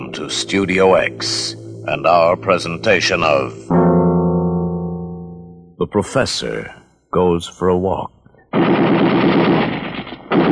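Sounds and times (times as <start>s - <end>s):
speech: 0.1s - 3.9s, 5.8s - 8.8s
machine gun firing: 8.5s - 10.5s.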